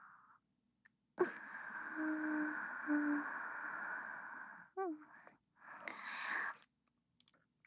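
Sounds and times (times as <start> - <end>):
person breathing while lying beside the listener: 1.2 - 7.3.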